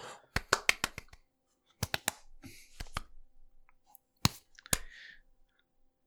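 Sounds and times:
hand clapping: 0.4 - 1.2, 1.8 - 2.2, 4.2 - 5.0.

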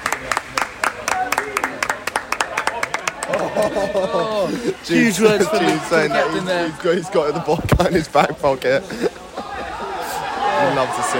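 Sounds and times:
audience clapping: 0.0 - 4.2, 5.6 - 7.6
laughter: 2.5 - 11.1
speech: 3.6 - 9.2, 10.6 - 11.1.

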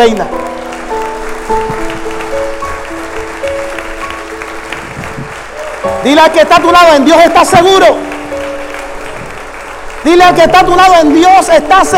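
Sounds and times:
speech: 0.0 - 0.4, 6.0 - 8.1, 10.0 - 11.9
audience applauding: 0.0 - 11.9.

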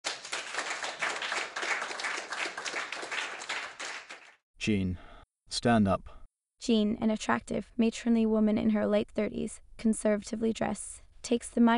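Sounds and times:
audience clapping: 0.0 - 4.4
speech: 4.6 - 11.7.

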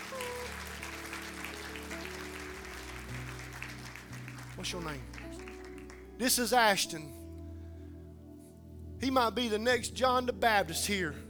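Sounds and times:
audience clapping hands: 0.0 - 7.0
speech: 4.6 - 5.2, 6.2 - 7.2, 9.0 - 11.2.

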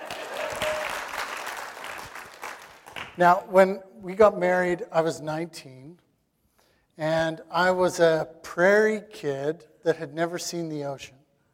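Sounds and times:
audience applause: 0.0 - 3.2
speech: 3.2 - 6.0, 7.0 - 11.2.

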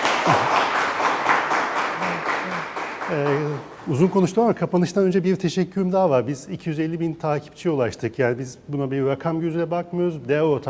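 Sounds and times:
audience applause: 0.0 - 4.3
speech: 3.1 - 10.6.

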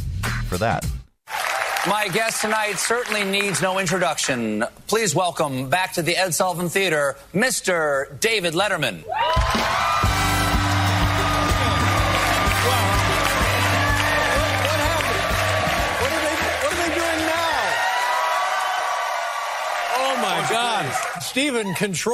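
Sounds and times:
speech: 0.5 - 0.9, 1.8 - 10.0, 20.6 - 22.1
talk show studio audience in the Ed Sullivan Theater cheering and applauding: 1.2 - 4.5, 9.1 - 22.1.

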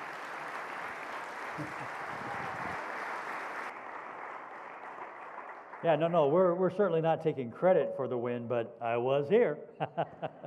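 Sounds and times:
Nebraska congregation applause welcoming a pastor: 0.0 - 6.1
laughter: 1.6 - 2.0, 9.8 - 10.4
speech: 1.6 - 2.3, 5.8 - 10.4.

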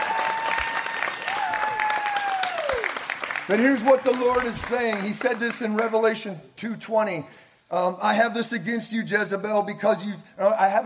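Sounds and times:
audience applause: 0.0 - 5.9
speech: 3.5 - 10.8.

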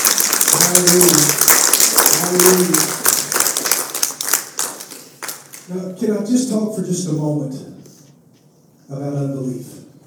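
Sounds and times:
audience hand clapping: 0.0 - 5.7
speech: 0.6 - 1.5, 2.2 - 2.9, 5.7 - 7.8, 8.9 - 9.8.

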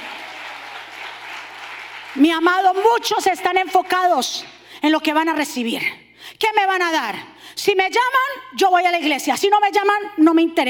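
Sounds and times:
large crowd applause: 0.0 - 2.2
speech: 2.2 - 10.6.

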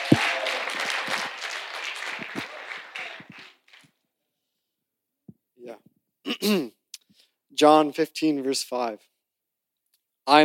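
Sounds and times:
audience clapping: 0.0 - 4.0
speech: 6.4 - 6.8, 7.6 - 9.1, 10.3 - 10.4.

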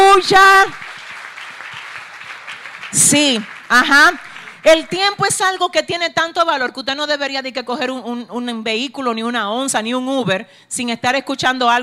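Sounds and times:
speech: 0.2 - 0.8, 2.9 - 11.8
audience applause: 0.6 - 5.0.

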